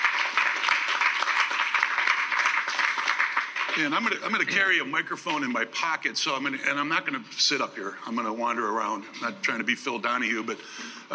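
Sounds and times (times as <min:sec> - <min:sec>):
audience applause for speakers: 0:00.0 - 0:05.0
speech: 0:03.8 - 0:11.1.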